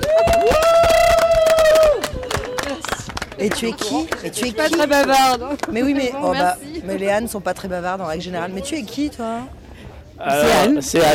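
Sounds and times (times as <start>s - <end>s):
audience applause: 0.0s - 5.7s
speech: 3.4s - 9.6s, 10.2s - 11.1s.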